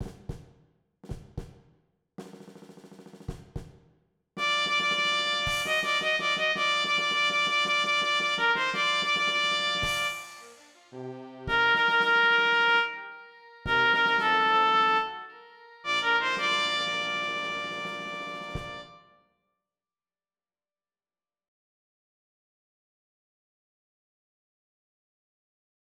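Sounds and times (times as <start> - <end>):
trumpet: 4.4 - 19.2.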